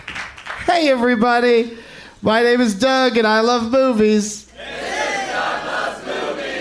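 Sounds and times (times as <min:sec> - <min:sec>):
speech: 0:00.7 - 0:04.4
audience at CineFamily in Los Angeles singing together: 0:04.6 - 0:06.6.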